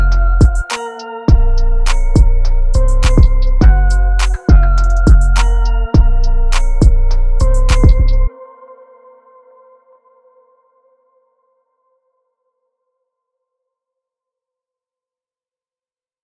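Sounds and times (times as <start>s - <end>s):
west coast hip-hop beat: 0.0s - 8.3s.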